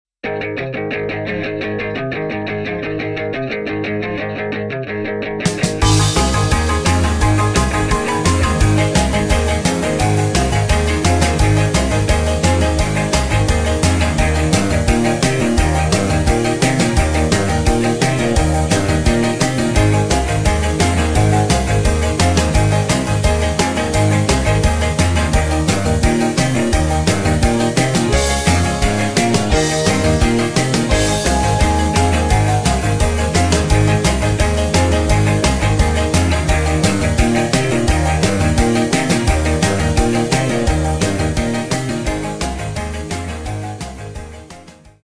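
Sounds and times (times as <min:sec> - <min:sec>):
backing track without backing vocals: 0:00.5 - 0:44.9.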